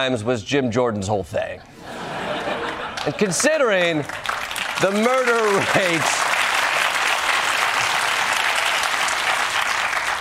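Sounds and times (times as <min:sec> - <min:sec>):
speech: 0:00.0 - 0:02.0, 0:03.0 - 0:06.3
laughter: 0:01.6 - 0:03.8
audience applause: 0:02.3 - 0:10.1.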